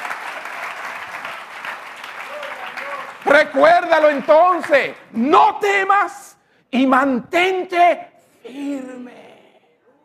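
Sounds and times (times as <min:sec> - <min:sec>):
crowd applause: 0:00.0 - 0:05.2
speech: 0:03.2 - 0:09.2.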